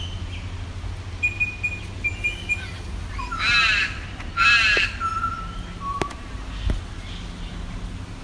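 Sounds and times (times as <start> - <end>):
butcherbird calling with fluted whistles: 1.2 - 6.6.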